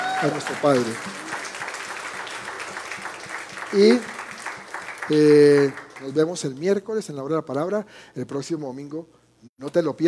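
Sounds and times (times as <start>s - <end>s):
crowd applause: 0.0s - 6.2s
speech: 0.2s - 1.3s, 3.7s - 4.2s, 5.1s - 10.0s.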